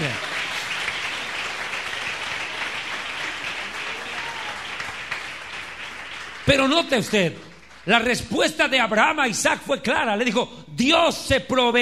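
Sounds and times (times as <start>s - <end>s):
audience applauding: 0.0s - 8.3s
speech: 6.5s - 11.8s.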